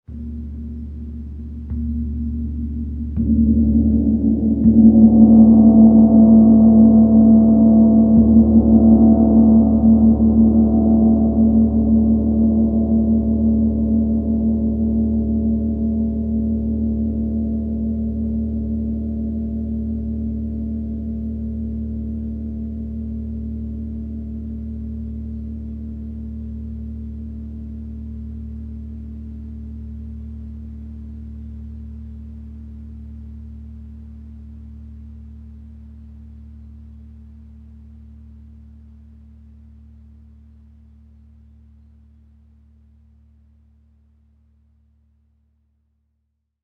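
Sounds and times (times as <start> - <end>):
gong: 0.1 - 24.6.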